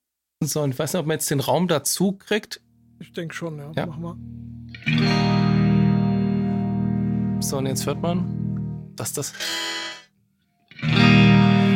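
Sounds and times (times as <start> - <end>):
speech: 0.4 - 5.3, 7.4 - 8.4, 9.0 - 10.0
distorted electric guitar from a modeling amp tuned a semitone down: 3.0 - 10.1, 10.7 - 11.7.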